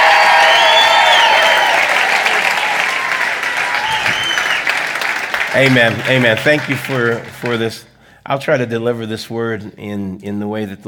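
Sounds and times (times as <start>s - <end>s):
whoops and cheers: 0.0s - 4.8s
large audience applause: 0.0s - 7.8s
speech: 5.5s - 10.8s.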